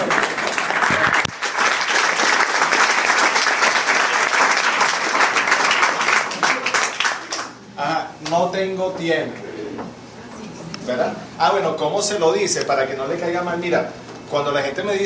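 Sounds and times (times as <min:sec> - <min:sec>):
audience applause: 0:00.0 - 0:07.6
speech: 0:08.3 - 0:10.0, 0:10.9 - 0:15.0.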